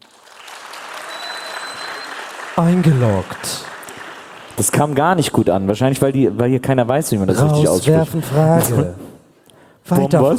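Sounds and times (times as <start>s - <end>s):
audience applause: 0.0s - 5.0s
speech: 2.6s - 3.7s, 4.6s - 9.1s, 9.8s - 10.3s.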